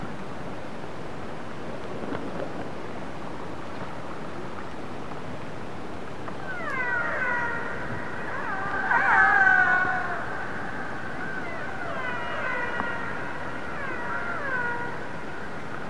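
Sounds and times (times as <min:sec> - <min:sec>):
transient orca harmonic tonal call: 0:06.4 - 0:15.4.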